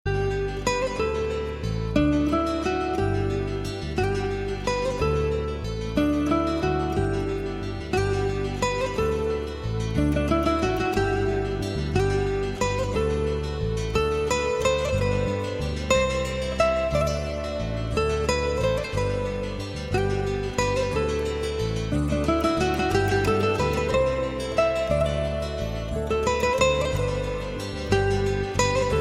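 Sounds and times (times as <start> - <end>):
Alaturka guitar: 0.1 - 29.0.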